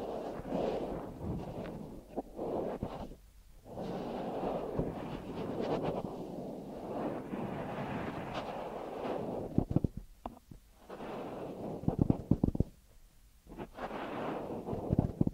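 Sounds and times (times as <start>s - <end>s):
muffled ear massage rubbing: 0.0s - 12.8s, 13.5s - 15.3s
sharp crackles and small taps: 9.5s - 10.7s, 11.8s - 12.9s, 14.8s - 15.3s.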